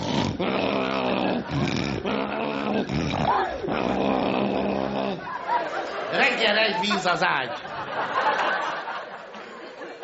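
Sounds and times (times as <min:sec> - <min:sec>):
person imitating a sleeper's snoring: 0:00.0 - 0:05.3
laughter: 0:05.0 - 0:10.0
speech: 0:06.4 - 0:08.2.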